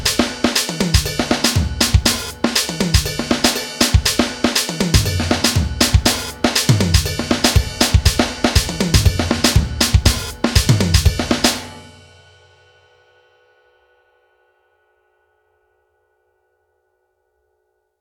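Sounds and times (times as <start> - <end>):
bass drum: 0.9 - 12.0.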